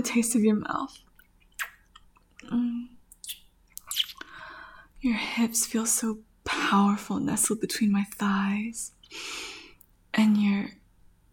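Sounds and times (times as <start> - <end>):
speech: 0.0 - 1.1, 5.0 - 9.5, 10.2 - 10.8
wet kissing between intimate partners: 1.5 - 2.0, 3.1 - 4.3.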